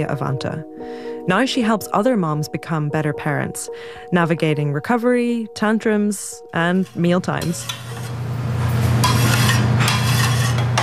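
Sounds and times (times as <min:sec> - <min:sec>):
speech: 0:00.0 - 0:07.9
dishes and utensils clattering during sandwich prep in an industrial-sized kitchen: 0:06.8 - 0:10.8.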